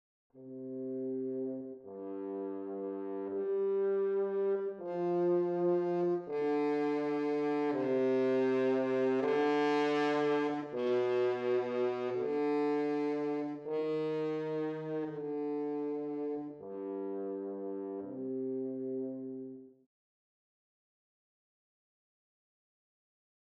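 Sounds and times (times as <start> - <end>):
horn: 0.4 - 19.8.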